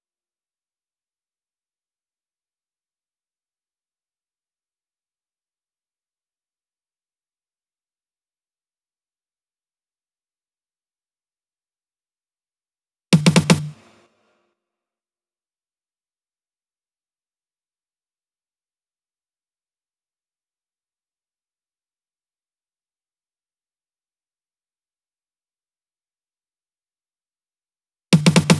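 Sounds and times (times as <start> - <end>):
128 BPM percussion fill: 13.2 - 14.0, 28.2 - 28.5.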